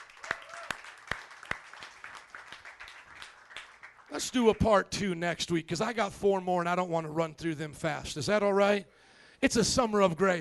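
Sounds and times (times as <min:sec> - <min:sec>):
crowd applauding: 0:00.0 - 0:04.7
speech: 0:04.1 - 0:10.3.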